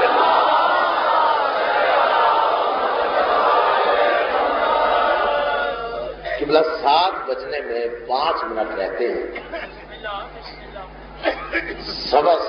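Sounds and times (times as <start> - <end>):
large crowd loudly reciting salawat together: 0.0 - 6.2
laughter: 0.0 - 12.4
speech: 7.3 - 12.4.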